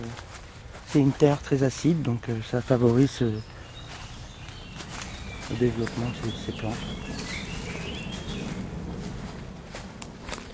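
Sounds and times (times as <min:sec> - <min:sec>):
speech: 0:00.9 - 0:03.5, 0:05.5 - 0:07.4
airplane flying overhead: 0:03.4 - 0:10.5.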